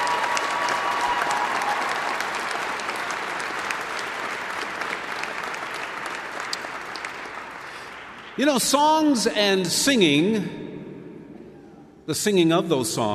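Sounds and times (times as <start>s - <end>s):
audience applause: 0.0s - 8.4s
speech: 8.4s - 10.6s, 12.1s - 13.1s.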